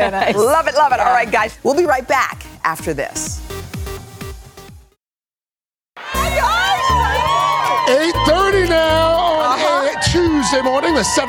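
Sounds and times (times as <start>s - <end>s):
laughter: 0.0s - 0.9s
speech: 0.0s - 3.4s, 10.5s - 11.2s
thumping music beat: 0.0s - 5.0s, 6.0s - 11.2s
crowd cheering and shouting on outdoor plaza: 6.0s - 11.2s.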